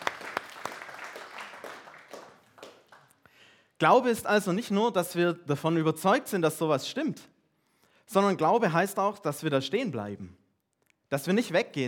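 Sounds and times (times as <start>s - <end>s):
short round of applause: 0.0s - 3.4s
speech: 3.8s - 7.3s, 8.1s - 10.4s, 11.1s - 11.8s.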